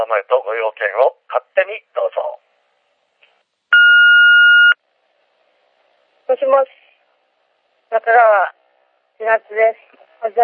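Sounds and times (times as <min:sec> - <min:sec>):
speech: 0:00.0 - 0:02.4, 0:06.4 - 0:06.8, 0:07.9 - 0:08.6, 0:09.2 - 0:10.4
answering machine beep: 0:03.8 - 0:04.8.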